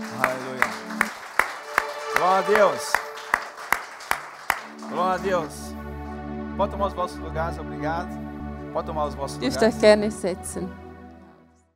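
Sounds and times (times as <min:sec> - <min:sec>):
church congregation clapping in rhythm: 0:00.0 - 0:06.2
speech: 0:02.2 - 0:03.0, 0:04.9 - 0:05.7, 0:06.6 - 0:10.8
held voice: 0:09.4 - 0:10.1.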